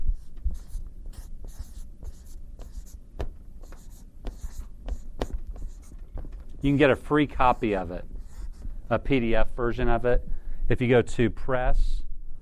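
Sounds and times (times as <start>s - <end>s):
writing on a board during a talk: 0.2s - 8.8s
speech: 6.6s - 8.1s, 8.9s - 12.0s.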